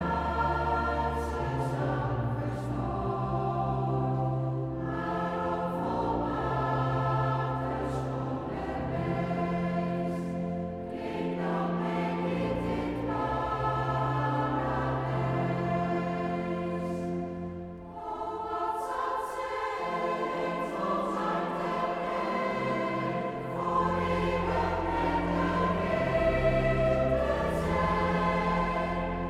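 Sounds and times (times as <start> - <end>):
women's choir: 0.0 - 29.2.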